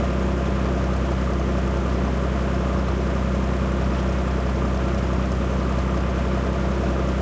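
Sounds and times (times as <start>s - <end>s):
engines: 0.0s - 7.2s.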